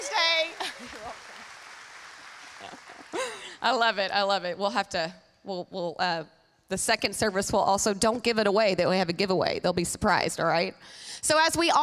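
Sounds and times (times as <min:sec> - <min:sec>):
applause for a mother at a Mother's Day church service: 0:00.0 - 0:03.6
speech: 0:03.6 - 0:11.8.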